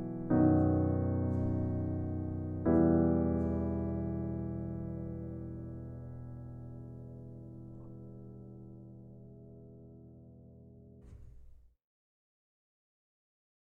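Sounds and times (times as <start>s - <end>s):
sampled piano prelude: 0.0s - 11.5s.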